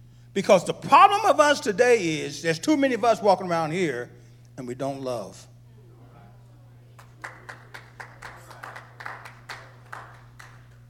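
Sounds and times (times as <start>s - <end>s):
speech: 0.4s - 5.5s
audience applause: 7.0s - 10.8s.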